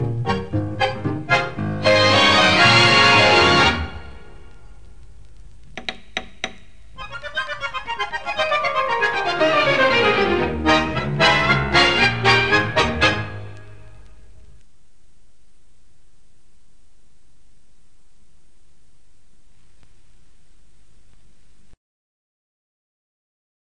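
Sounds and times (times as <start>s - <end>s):
instrumental music: 0.0s - 4.5s, 5.9s - 14.2s.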